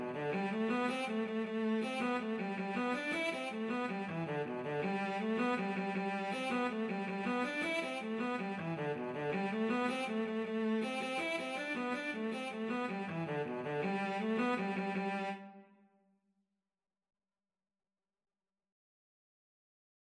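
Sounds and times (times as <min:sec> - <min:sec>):
violoncello: 0:00.0 - 0:15.6.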